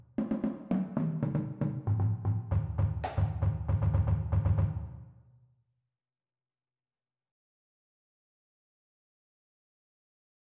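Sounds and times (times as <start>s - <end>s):
drumline: 0.2s - 4.8s
bass: 2.0s - 4.9s.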